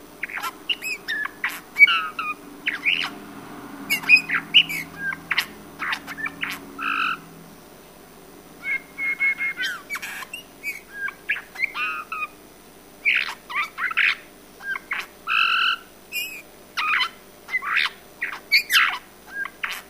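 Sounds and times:
Eurasian bullfinch Pyrrhula pyrrhula call notes, soft piping whistles: 0.2s - 3.1s, 3.9s - 7.2s, 8.6s - 12.3s, 14.6s - 19.8s.

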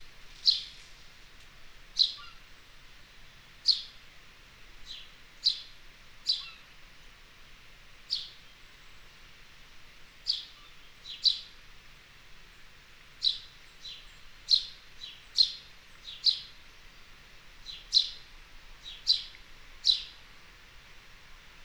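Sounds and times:
house sparrow chirping: 0.4s - 0.7s, 2.0s - 2.4s, 3.6s - 4.0s, 4.8s - 6.6s, 8.1s - 9.1s, 10.1s - 11.6s, 12.5s - 16.9s, 17.6s - 20.2s.

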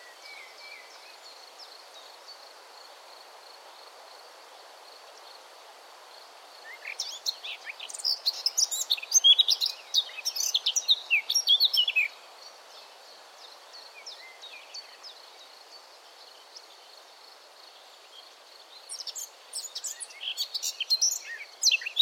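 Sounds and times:
Eurasian blackcap Sylvia atricapilla warbling song: 6.7s - 12.2s, 18.8s - 22.0s.

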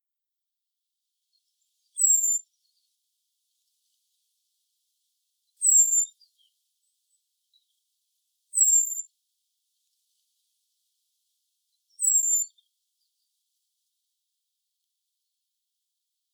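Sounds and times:
common blackbird calls: 2.0s - 2.4s, 5.6s - 6.4s, 8.5s - 9.0s, 11.9s - 12.5s.

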